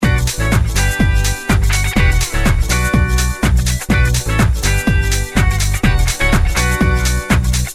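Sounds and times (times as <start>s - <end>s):
disco music: 0.0s - 7.7s.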